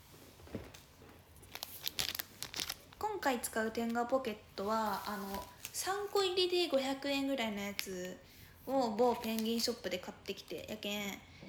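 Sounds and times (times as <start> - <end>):
plastic product packaging being torn and crinkled open: 1.4 - 3.0, 4.7 - 6.2, 9.0 - 9.7
speech: 3.2 - 11.3.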